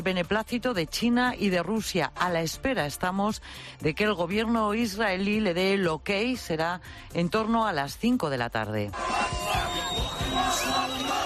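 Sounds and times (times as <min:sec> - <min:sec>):
speech: 0:00.0 - 0:11.2
crowd of Palestinians shouting and cheering in the Gaza Strip: 0:08.9 - 0:11.2.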